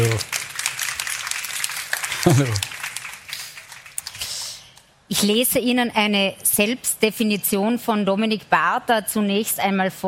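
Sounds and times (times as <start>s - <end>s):
audience applause: 0.0s - 4.2s
speech: 2.2s - 2.7s, 5.1s - 10.0s.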